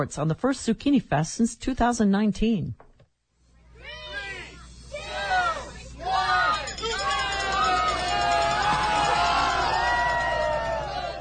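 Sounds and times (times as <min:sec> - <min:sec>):
speech: 0:00.0 - 0:02.8
festival crowd cheering at races: 0:03.8 - 0:11.1
high swooping whoops and squeals: 0:03.8 - 0:11.1.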